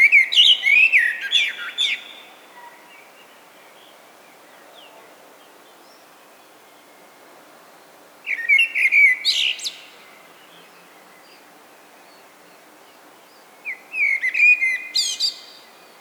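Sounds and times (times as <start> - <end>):
common blackbird singing: 0.0 - 3.0, 8.3 - 11.4, 13.7 - 15.9.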